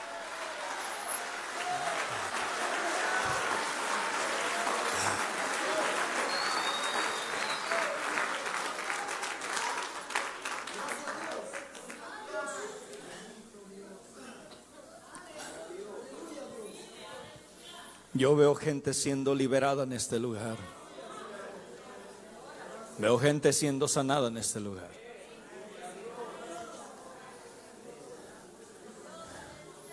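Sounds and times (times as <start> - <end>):
audience clapping hands: 0.0 - 12.3
speech: 18.2 - 20.8, 23.0 - 25.0.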